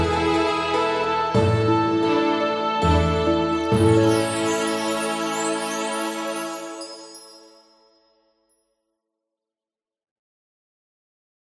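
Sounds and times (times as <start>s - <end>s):
Japanese song: 0.1s - 8.1s.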